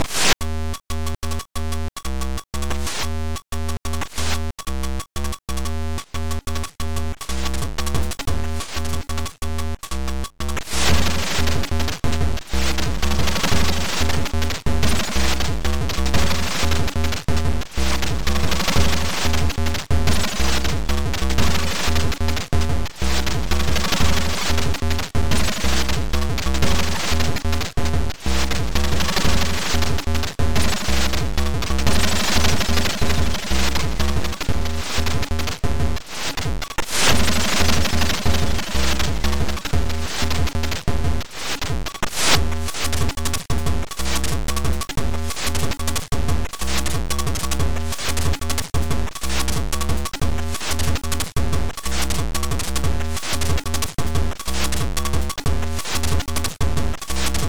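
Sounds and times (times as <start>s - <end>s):
noise: 0.0s - 57.4s.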